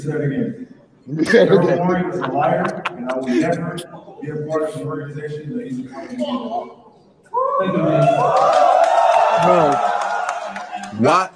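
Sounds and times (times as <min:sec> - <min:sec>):
speech: 0:00.0 - 0:09.9, 0:10.9 - 0:11.3
laughter: 0:01.2 - 0:03.9
audience clapping and cheering: 0:08.2 - 0:11.3.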